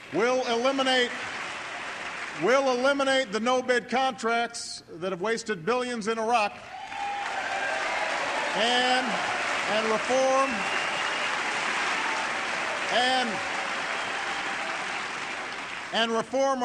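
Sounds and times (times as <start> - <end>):
hesitant scattered audience applause during a political speech: 0.0 - 2.7, 6.7 - 16.2
speech: 0.1 - 1.3, 2.4 - 6.8, 8.6 - 10.8, 12.9 - 13.5, 15.9 - 16.6.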